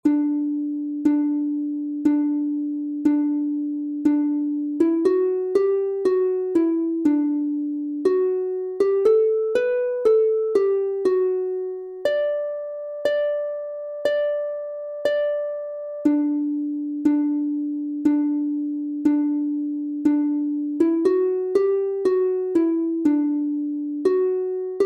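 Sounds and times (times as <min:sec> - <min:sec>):
instrumental canon on harp: 0:00.0 - 0:24.8.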